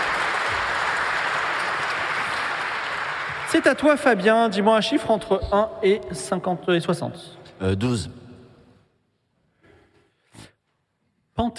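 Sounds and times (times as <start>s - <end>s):
audience applause: 0.0s - 4.6s
speech: 3.5s - 8.2s, 11.4s - 11.5s.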